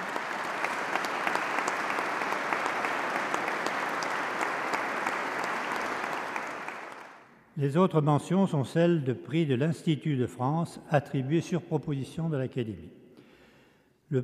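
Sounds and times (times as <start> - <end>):
audience applause: 0.0 - 7.3
speech: 7.6 - 13.0.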